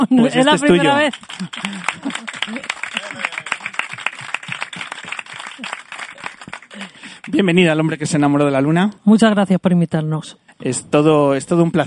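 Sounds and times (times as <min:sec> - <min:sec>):
speech: 0:00.0 - 0:02.8, 0:07.3 - 0:11.8
laughter: 0:00.0 - 0:03.9
audience applause: 0:00.4 - 0:07.4.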